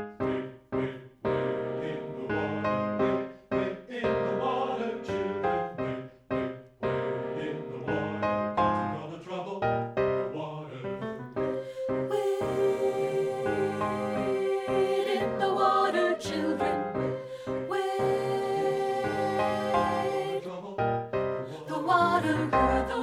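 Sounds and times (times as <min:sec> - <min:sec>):
alto voice singing a spiritual: 0:00.2 - 0:23.0.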